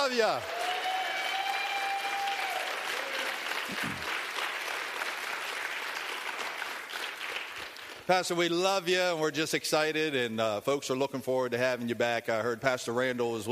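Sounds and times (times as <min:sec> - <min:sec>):
audience hand clapping: 0:00.0 - 0:08.4
speech: 0:00.1 - 0:00.6, 0:03.7 - 0:04.1, 0:08.1 - 0:13.4.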